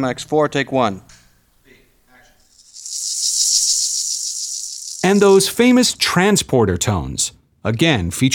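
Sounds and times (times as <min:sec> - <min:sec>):
speech: 0:00.0 - 0:01.2, 0:05.1 - 0:08.3
rattling maracas sound effect: 0:02.4 - 0:06.1.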